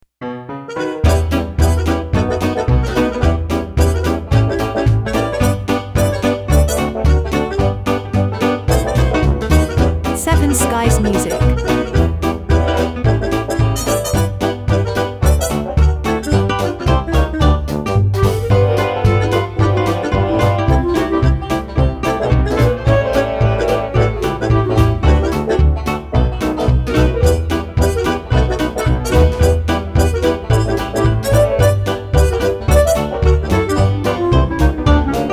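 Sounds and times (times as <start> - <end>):
dixieland jazz: 0.3 - 35.3.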